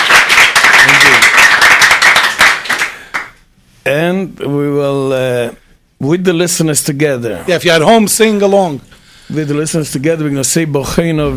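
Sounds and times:
audience applauding: 0:00.0 - 0:03.4
speech: 0:04.2 - 0:11.3.

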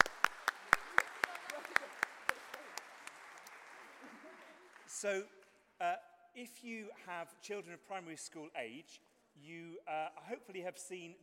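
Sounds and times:
round of applause in church for children after a contest: 0:00.0 - 0:05.6
speech: 0:05.0 - 0:11.2.

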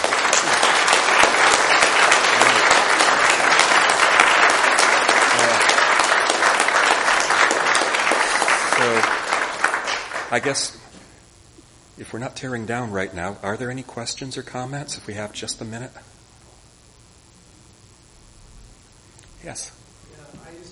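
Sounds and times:
audience applause: 0:00.0 - 0:10.8
speech: 0:10.3 - 0:10.8, 0:12.0 - 0:16.1, 0:19.4 - 0:19.8.

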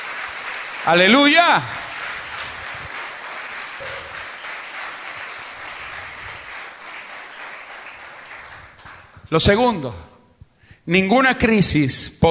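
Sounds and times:
audience applause: 0:00.0 - 0:09.2
speech: 0:00.8 - 0:01.8, 0:09.3 - 0:10.1, 0:10.9 - 0:12.2.

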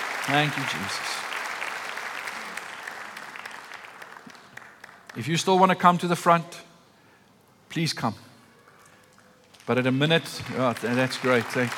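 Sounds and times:
audience applause: 0:00.0 - 0:05.3, 0:10.4 - 0:11.7
speech: 0:00.3 - 0:01.3, 0:05.2 - 0:06.7, 0:07.7 - 0:08.3, 0:09.7 - 0:11.7.

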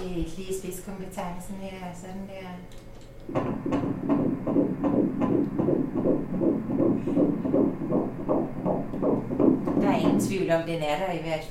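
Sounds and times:
speech: 0:00.2 - 0:05.4, 0:06.4 - 0:08.7, 0:10.0 - 0:11.4
fetal heartbeat on ultrasound Doppler: 0:03.3 - 0:11.4.

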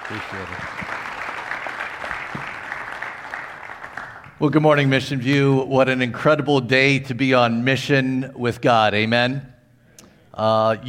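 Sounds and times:
church congregation applauding a guest speaker at Mission View: 0:00.0 - 0:05.1
speech: 0:00.1 - 0:01.0, 0:04.4 - 0:09.5, 0:10.4 - 0:10.8.

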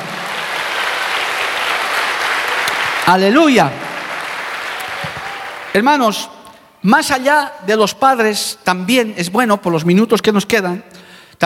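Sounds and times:
audience applause: 0:00.0 - 0:05.8
speech: 0:03.1 - 0:03.8, 0:05.8 - 0:11.4.

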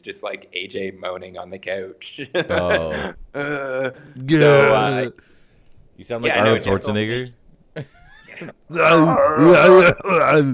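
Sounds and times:
speech: 0:00.0 - 0:05.3, 0:06.0 - 0:10.5
person imitating retching while vomiting: 0:08.4 - 0:10.5.

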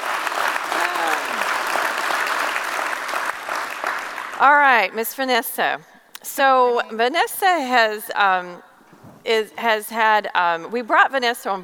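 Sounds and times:
audience applause: 0:00.0 - 0:04.5
speech: 0:04.4 - 0:11.6.

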